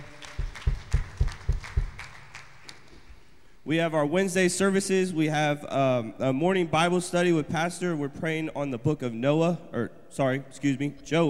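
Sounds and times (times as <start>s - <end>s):
applause: 0.0s - 3.2s
speech: 3.7s - 11.2s.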